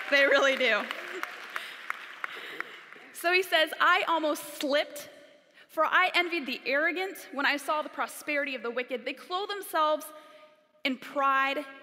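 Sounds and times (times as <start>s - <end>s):
audience applause: 0.0s - 3.2s
speech: 0.1s - 1.3s, 3.2s - 5.2s, 5.8s - 10.2s, 10.8s - 11.8s.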